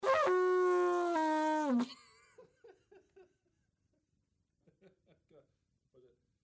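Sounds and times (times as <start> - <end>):
post horn: 0.0 - 1.9.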